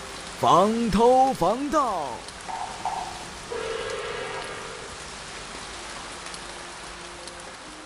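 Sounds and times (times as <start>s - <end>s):
rain outside the window: 0.0s - 7.8s
speech: 0.4s - 2.3s
faint tonal sounds: 2.4s - 6.6s.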